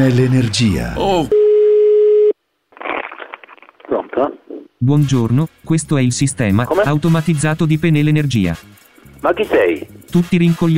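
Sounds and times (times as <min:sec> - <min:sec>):
speech: 0:00.0 - 0:01.4, 0:04.2 - 0:10.7
telephone busy tone after dropped line: 0:01.3 - 0:02.4.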